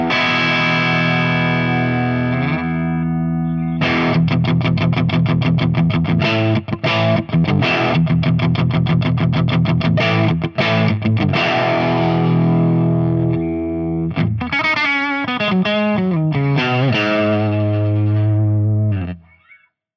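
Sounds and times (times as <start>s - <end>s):
ENGL amplifier channel 1 gain boost through V30 speaker: 0.0s - 19.3s.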